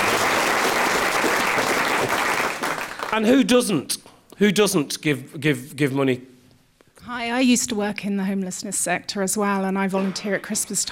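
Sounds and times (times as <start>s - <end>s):
audience applause: 0.0s - 3.5s
speech: 3.2s - 6.3s, 7.0s - 10.9s.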